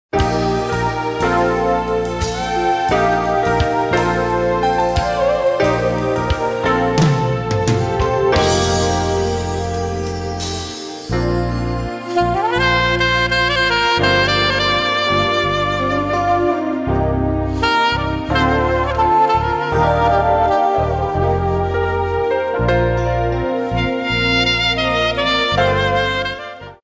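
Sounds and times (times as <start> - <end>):
light jazz: 0.2 - 26.8.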